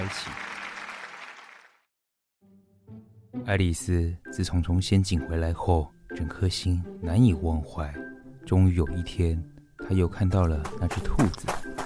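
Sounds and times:
speech: 0:00.0 - 0:00.4, 0:03.5 - 0:11.7
applause: 0:00.0 - 0:01.9.

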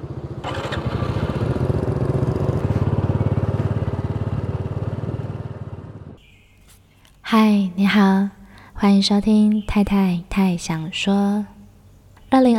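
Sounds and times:
motorcycle engine starting and rumbling: 0:00.0 - 0:06.2
speech: 0:07.3 - 0:11.5, 0:12.3 - 0:12.5.

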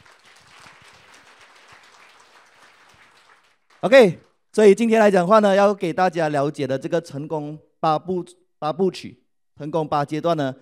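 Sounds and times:
audience applause: 0:00.0 - 0:04.1
speech: 0:03.8 - 0:10.5.

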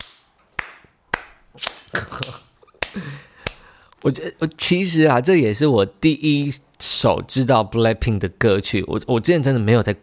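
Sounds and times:
sharp crisp claps: 0:00.0 - 0:03.7
speech: 0:01.6 - 0:02.4, 0:04.0 - 0:10.0.

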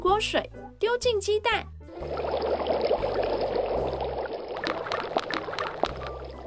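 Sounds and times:
speech: 0:00.2 - 0:02.4
running water rinsing lettuce and tomatoes: 0:02.0 - 0:06.4.

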